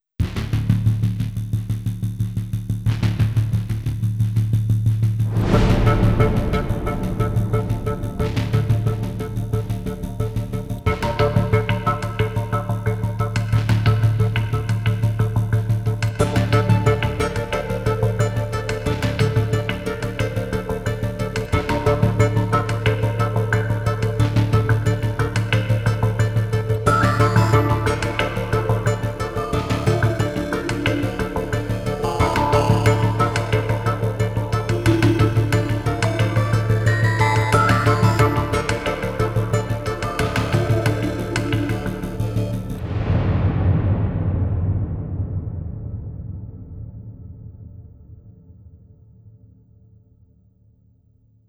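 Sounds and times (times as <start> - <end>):
tension music: 0.3 - 49.1.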